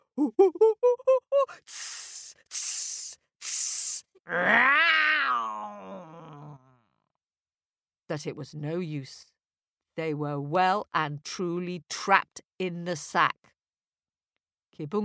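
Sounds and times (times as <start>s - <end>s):
speech: 0.2s - 1.1s, 8.1s - 9.3s, 10.0s - 13.5s, 14.8s - 15.0s
trapped animals yowling, howling, hissing and shrieking: 4.3s - 6.6s.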